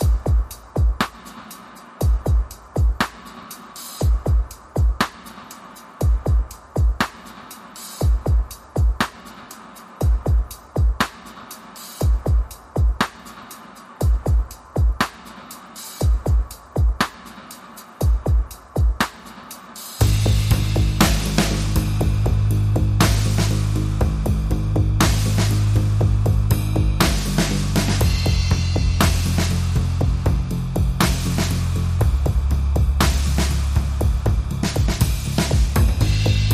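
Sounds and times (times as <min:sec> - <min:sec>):
drums: 0:00.0 - 0:36.5
bass: 0:20.0 - 0:36.5.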